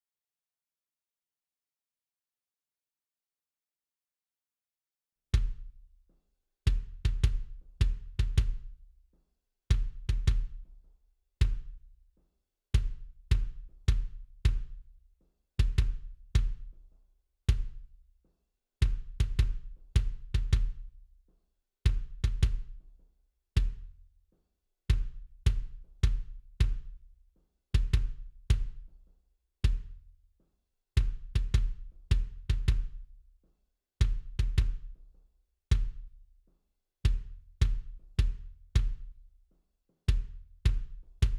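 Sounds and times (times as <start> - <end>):
kick drum: 5.4 - 6.0, 6.7 - 9.0, 9.7 - 10.8, 11.4 - 12.2, 12.8 - 16.9, 17.5 - 18.1, 18.8 - 21.1, 21.9 - 23.0, 23.6 - 24.1, 24.9 - 27.2, 27.8 - 30.2, 31.0 - 33.3, 34.0 - 36.3, 37.1 - 39.4, 40.0 - 41.3.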